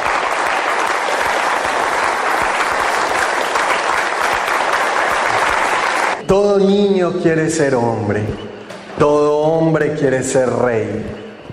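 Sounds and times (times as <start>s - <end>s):
applause: 0.0s - 6.2s
speech: 6.3s - 11.2s.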